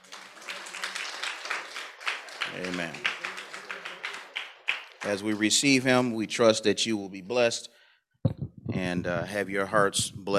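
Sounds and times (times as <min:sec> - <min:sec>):
audience applause: 0:00.0 - 0:06.1
speech: 0:02.6 - 0:03.1, 0:05.0 - 0:07.8, 0:09.0 - 0:10.3.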